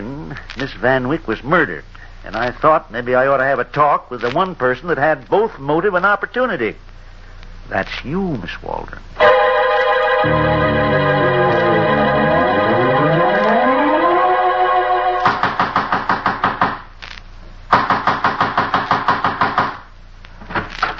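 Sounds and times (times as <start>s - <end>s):
speech: 0.6s - 6.9s, 7.7s - 9.5s, 10.2s - 11.7s
sustained wavering siren-like tone: 9.2s - 15.3s
loud rapid pounding on a door: 15.3s - 16.8s, 17.7s - 19.8s.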